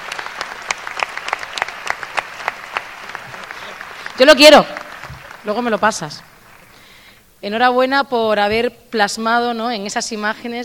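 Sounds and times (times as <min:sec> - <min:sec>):
audience applause: 0:00.0 - 0:06.9
speech: 0:04.2 - 0:04.8, 0:05.4 - 0:06.3, 0:07.4 - 0:10.6.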